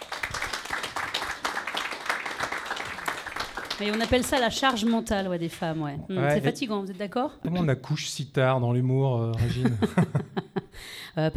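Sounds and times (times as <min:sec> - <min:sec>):
crowd applauding: 0:00.0 - 0:05.0
speech: 0:03.8 - 0:11.3
laughter: 0:09.4 - 0:10.8.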